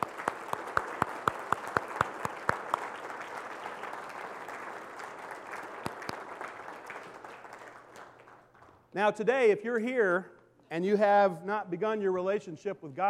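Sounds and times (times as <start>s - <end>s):
audience applause: 0.0s - 8.8s
speech: 9.0s - 13.0s.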